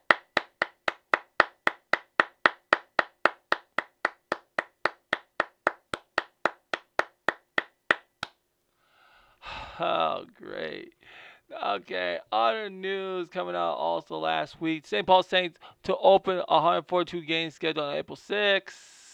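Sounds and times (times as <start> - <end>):
audience clapping at a Twins fan tribute: 0.0 - 8.3
speech: 9.8 - 19.0.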